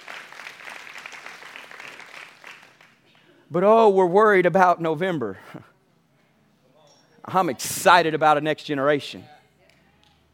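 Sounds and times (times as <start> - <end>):
audience applause: 0.0 - 3.0
speech: 3.5 - 5.7, 7.2 - 9.3.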